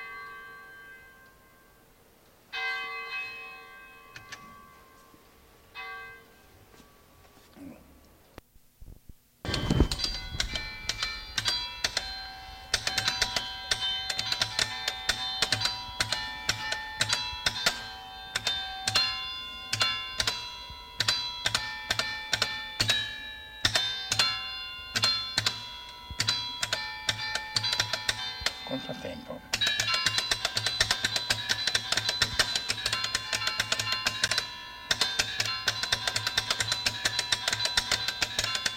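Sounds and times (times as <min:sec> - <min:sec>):
bells in Pieve di Teco in Imperia Liguria: 0:00.0 - 0:07.5, 0:09.4 - 0:38.7.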